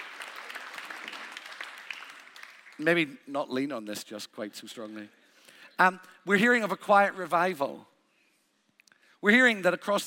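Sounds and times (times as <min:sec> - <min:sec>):
audience applause: 0:00.0 - 0:02.8
speech: 0:02.8 - 0:05.2, 0:05.8 - 0:07.9, 0:09.2 - 0:10.0.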